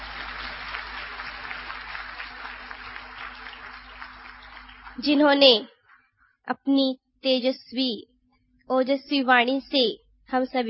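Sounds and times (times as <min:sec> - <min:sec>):
audience applause: 0:00.0 - 0:05.4
speech: 0:05.0 - 0:05.7, 0:06.5 - 0:08.1, 0:08.7 - 0:10.6.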